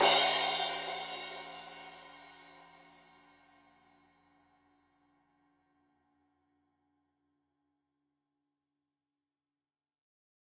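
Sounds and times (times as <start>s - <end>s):
15 inch crash cymbal edge hit: 0.0s - 2.3s.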